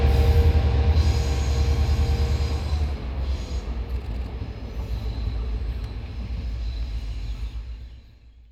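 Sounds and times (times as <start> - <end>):
locomotive horn greeting: 0.0 - 3.9
diesel locomotive engines idling: 0.0 - 7.3.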